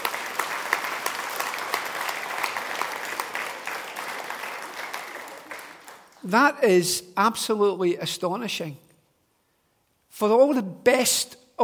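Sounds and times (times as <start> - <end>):
audience applause: 0.0 - 6.2
speech: 6.2 - 8.8, 10.2 - 11.6.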